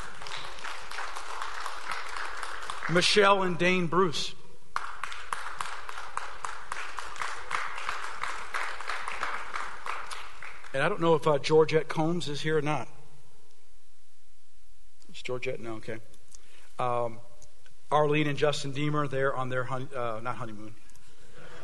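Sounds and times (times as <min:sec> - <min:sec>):
audience applause: 0:00.0 - 0:03.4, 0:04.8 - 0:10.8
speech: 0:02.9 - 0:04.4, 0:10.8 - 0:13.0, 0:15.2 - 0:16.1, 0:16.8 - 0:17.3, 0:17.9 - 0:20.8.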